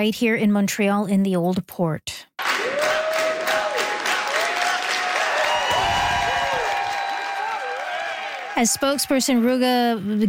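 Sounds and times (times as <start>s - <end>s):
speech: 0.0s - 2.3s, 8.6s - 10.2s
campaign supporters cheering and applauding at a Québec Solidaire rally in Montreal's Old Port: 2.4s - 9.4s.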